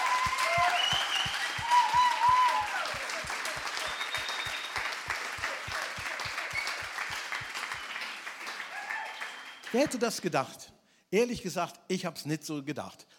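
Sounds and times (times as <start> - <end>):
audience applause: 0.0 - 10.0
speech: 9.7 - 13.1.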